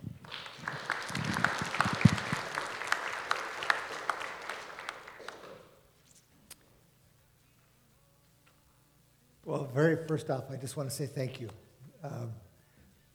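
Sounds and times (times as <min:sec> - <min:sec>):
church congregation applauding to welcome a missionary guest speaker: 0:00.0 - 0:05.8
speech: 0:09.8 - 0:12.4.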